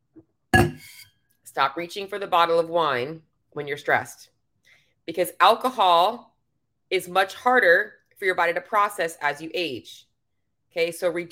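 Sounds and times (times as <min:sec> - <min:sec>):
ceramic coffee mug clink: 0:00.6 - 0:01.1
speech: 0:01.6 - 0:04.3, 0:05.1 - 0:06.3, 0:06.9 - 0:10.1, 0:10.7 - 0:11.2.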